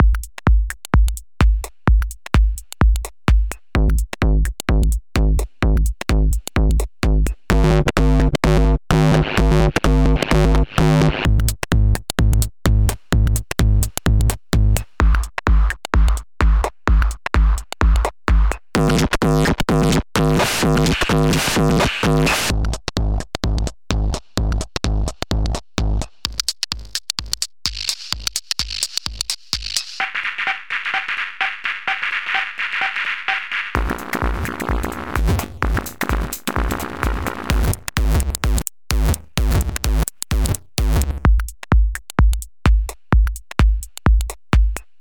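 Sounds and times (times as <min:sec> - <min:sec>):
drum loop: 0:00.0 - 0:44.9.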